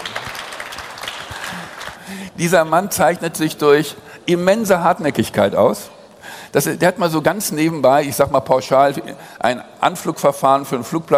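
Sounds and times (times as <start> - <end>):
crowd clapping: 0.0 - 2.3
speech: 2.1 - 11.1.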